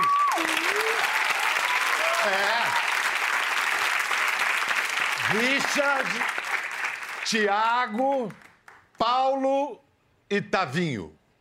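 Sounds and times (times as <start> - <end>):
audience applause: 0.0 - 8.8
speech: 2.2 - 2.7, 5.3 - 6.4, 7.3 - 8.4, 9.0 - 11.2.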